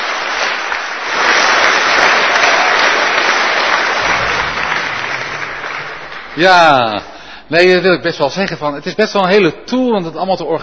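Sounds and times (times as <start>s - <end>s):
audience applause: 0.0s - 7.0s
speech: 6.4s - 10.6s.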